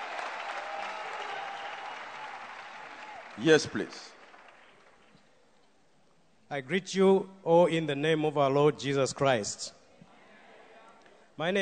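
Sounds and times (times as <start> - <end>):
audience applause: 0.0 - 5.1
speech: 3.4 - 4.2, 6.5 - 9.8, 11.4 - 11.6.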